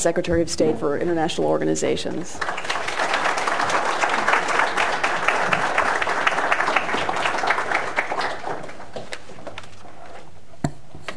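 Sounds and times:
speech: 0.0 - 3.0
audience applause welcoming a speaker at a public affairs lecture: 2.4 - 9.6.

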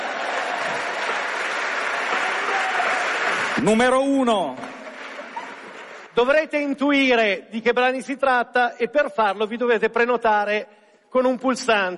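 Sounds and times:
audience applause: 0.0 - 6.2
speech: 3.6 - 4.6, 6.2 - 11.9.

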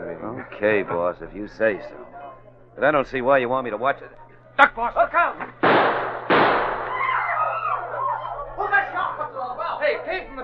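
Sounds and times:
laughter: 0.0 - 2.6, 4.1 - 5.6, 6.9 - 10.4
agitated overlapping voices talking: 0.0 - 5.7, 6.7 - 10.4
speech: 0.2 - 2.1, 2.8 - 6.0
gunshot: 5.6 - 7.0.

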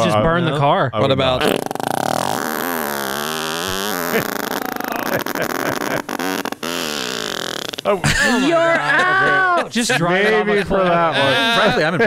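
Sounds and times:
speech: 0.1 - 1.8, 4.1 - 4.3, 7.9 - 12.0
fart: 1.4 - 8.0
laughter: 3.9 - 6.2, 7.9 - 12.0.

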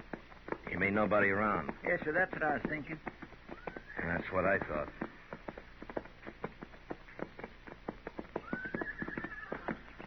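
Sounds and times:
several horses' hooves clip-clopping: 0.0 - 10.0
speech: 0.8 - 3.2, 4.0 - 5.0
horse whinnying: 8.4 - 10.0.

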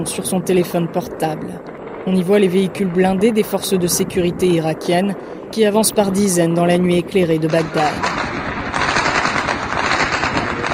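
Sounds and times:
speech: 0.0 - 8.2
hundreds of gunshots echoing in the neighbourhood: 1.6 - 3.2, 7.4 - 10.7.

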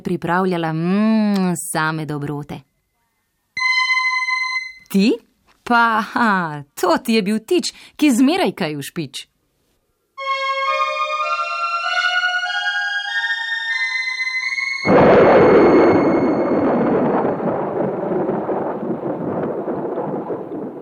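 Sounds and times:
speech: 0.0 - 2.7, 4.9 - 9.3
gliding musical tones: 3.6 - 4.9, 10.2 - 16.6
heavy storm rumbling: 14.8 - 20.8
thunder crash: 14.8 - 20.8.

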